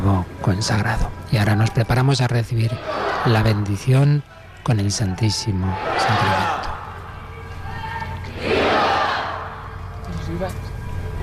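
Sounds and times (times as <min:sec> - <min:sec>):
speech: 0:00.4 - 0:06.4
crowd shouting cheers: 0:02.7 - 0:03.9, 0:05.2 - 0:10.0
loud applause: 0:05.7 - 0:09.8.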